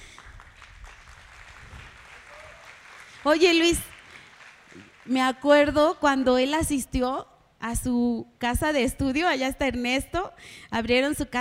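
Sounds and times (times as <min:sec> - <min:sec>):
audience applause: 0:00.0 - 0:05.2
speech: 0:03.2 - 0:03.9, 0:05.1 - 0:11.3.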